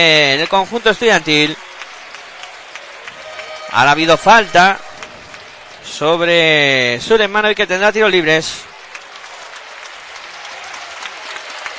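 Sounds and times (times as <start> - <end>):
speech: 0.0 - 1.7, 3.7 - 4.9, 5.8 - 8.7
arena crowd applauding: 0.0 - 11.7.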